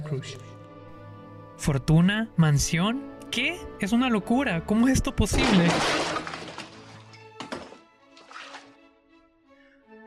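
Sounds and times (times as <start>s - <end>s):
speech: 0.1s - 0.6s, 1.6s - 6.1s
body collapsing heavily onto the floor: 5.4s - 7.8s
sharp thumps and clatters: 7.3s - 7.8s.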